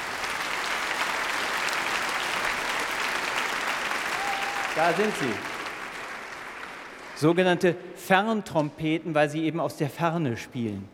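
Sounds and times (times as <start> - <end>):
audience applause: 0.0 - 7.3
speech: 4.8 - 5.5, 7.2 - 10.9.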